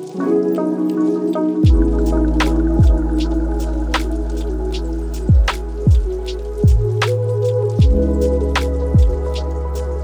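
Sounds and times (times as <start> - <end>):
lofi hip hop: 0.2 - 10.0.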